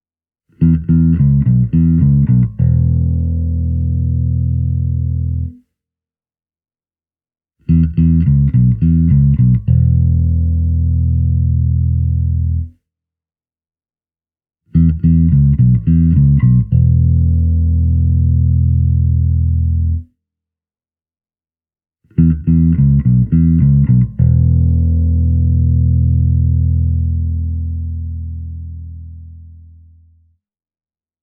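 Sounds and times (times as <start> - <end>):
1986 Japanese Jazz Bass through digital modelling bass amplifier and Markbass Standard 410HF cabinet: 0.6 - 5.6, 7.7 - 12.7, 14.8 - 20.0, 22.2 - 30.1.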